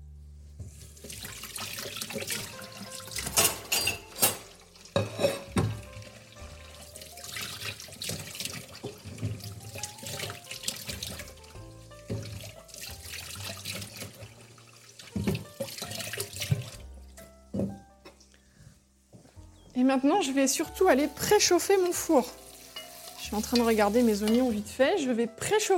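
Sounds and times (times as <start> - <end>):
running kitchen tap water as hands and sweet potatoes are washed: 0.6 - 17.8, 20.7 - 25.0
water splashing: 0.8 - 3.6, 5.6 - 16.8, 21.0 - 24.7
speech: 19.8 - 22.4, 23.3 - 25.7.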